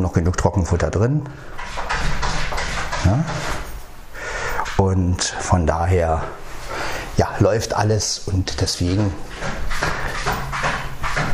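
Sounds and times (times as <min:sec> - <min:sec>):
speech: 0:00.0 - 0:01.9, 0:03.0 - 0:03.6, 0:04.9 - 0:06.4, 0:07.2 - 0:10.6
cat scratching in litter box: 0:01.4 - 0:03.8, 0:08.5 - 0:11.3.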